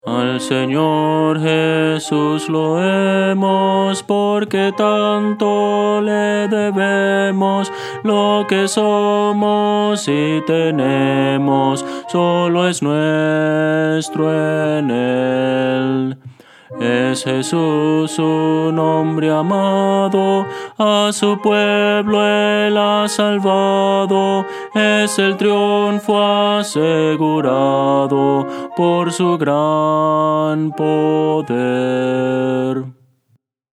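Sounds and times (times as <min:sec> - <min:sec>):
contralto voice: 0:00.0 - 0:33.0.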